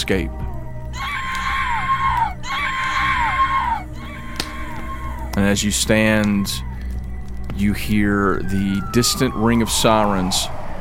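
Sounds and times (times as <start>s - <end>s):
speech: 0.0s - 0.4s, 5.4s - 6.7s, 7.6s - 10.6s
creatures shrieking in flames: 1.0s - 5.3s
steady low rumble: 1.6s - 10.7s.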